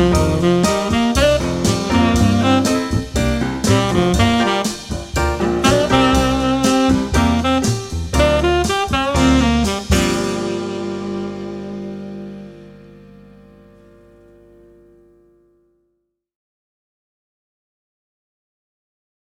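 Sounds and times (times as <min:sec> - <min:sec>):
funky trumpet music: 0:00.0 - 0:14.0.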